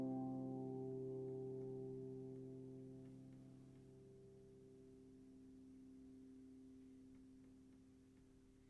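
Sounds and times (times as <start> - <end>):
music piece: 0.0 - 3.4.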